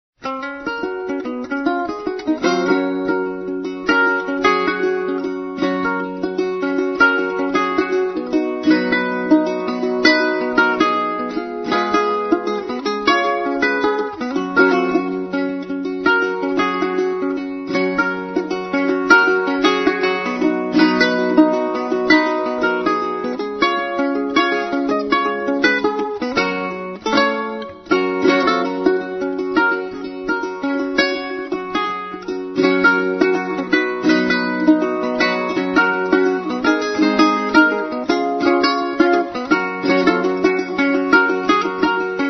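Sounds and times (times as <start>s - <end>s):
Christmas song: 0.2s - 42.2s.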